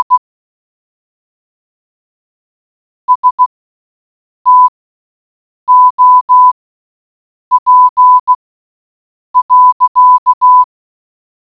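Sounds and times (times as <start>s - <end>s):
morse code beeps: 0.0s - 0.2s, 3.1s - 3.5s, 4.5s - 4.7s, 5.7s - 6.5s, 7.5s - 8.4s, 9.4s - 10.7s.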